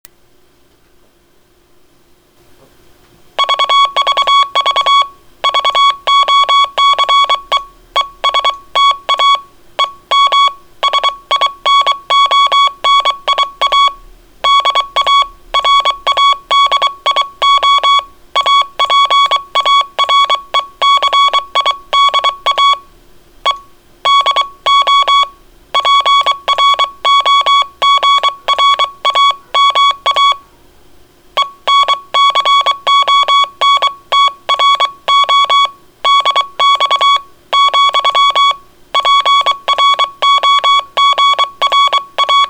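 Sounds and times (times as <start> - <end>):
morse code beeps: 3.4 - 30.5, 31.4 - 42.4.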